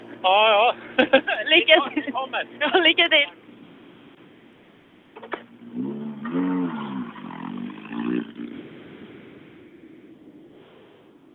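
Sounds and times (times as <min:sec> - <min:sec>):
speech: 0:00.2 - 0:03.4
laughter: 0:00.7 - 0:03.1
Volvo 940 rally car engine revving while arriving: 0:02.4 - 0:10.5.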